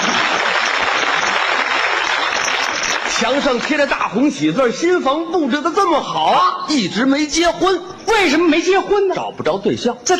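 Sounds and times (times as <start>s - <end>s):
audience applause: 0.0s - 3.8s
speech: 3.2s - 10.1s.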